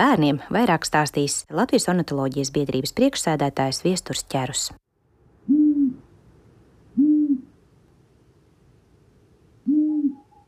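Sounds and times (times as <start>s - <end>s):
speech: 0.0s - 4.8s
long-eared owl hooting: 5.4s - 6.1s, 6.9s - 7.6s, 9.6s - 10.4s.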